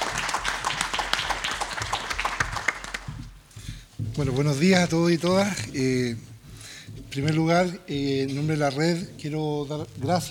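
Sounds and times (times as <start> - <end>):
audience applause: 0.0 - 3.1
speech: 4.2 - 6.3, 7.1 - 10.2.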